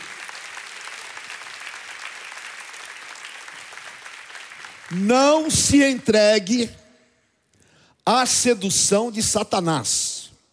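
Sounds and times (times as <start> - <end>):
audience applause: 0.0 - 5.5
speech: 4.9 - 6.8, 8.1 - 10.2.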